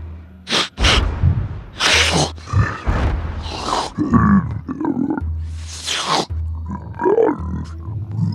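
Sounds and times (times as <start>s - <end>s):
sharp sniffing bursts: 0.5s - 1.1s, 1.8s - 2.4s, 5.5s - 6.3s
person imitating ice trolls with grunts: 1.8s - 8.3s.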